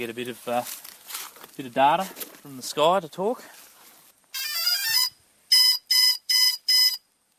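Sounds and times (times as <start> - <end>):
speech: 0.0 - 0.9, 1.6 - 3.6
GPS drone start-up beeps: 4.4 - 7.0.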